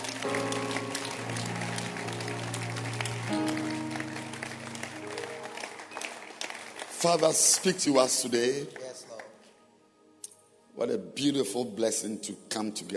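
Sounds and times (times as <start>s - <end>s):
congregation clapping hands during a church service: 0.0s - 9.5s
speech: 7.0s - 8.8s, 11.2s - 12.9s.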